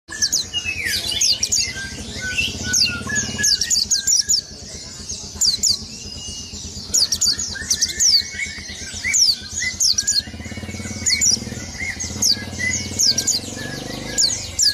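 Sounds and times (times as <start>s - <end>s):
white-eye song of rapid high thin chirps and twittering: 0.1s - 14.7s.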